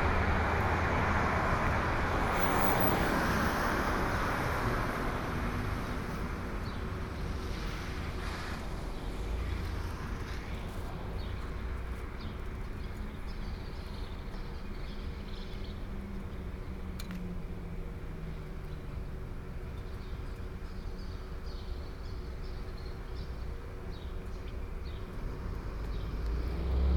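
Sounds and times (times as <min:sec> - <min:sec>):
train yard in Tucumcari: 0:00.0 - 0:26.8.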